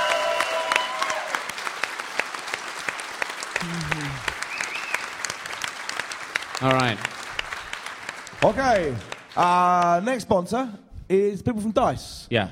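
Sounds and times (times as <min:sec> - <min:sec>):
crowd applause: 0:00.0 - 0:10.0
speech: 0:06.6 - 0:07.2, 0:08.4 - 0:12.4.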